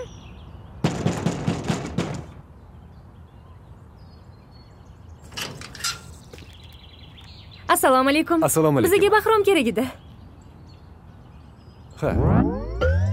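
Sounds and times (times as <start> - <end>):
knocking on the door of number 47: 0.8 - 2.4
speech: 7.7 - 10.1, 12.0 - 12.6.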